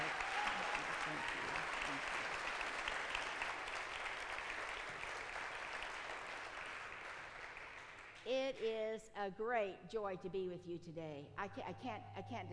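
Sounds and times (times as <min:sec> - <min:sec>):
audience applause welcoming a guest speaker at a church gathering: 0:00.0 - 0:08.2
speech: 0:08.5 - 0:12.5.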